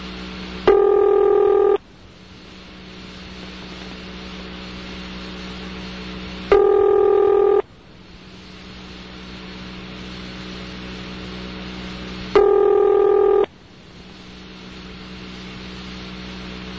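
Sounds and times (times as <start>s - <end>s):
Bell System telephone ringback tone: 0.7s - 1.8s, 6.5s - 7.6s, 12.4s - 13.5s.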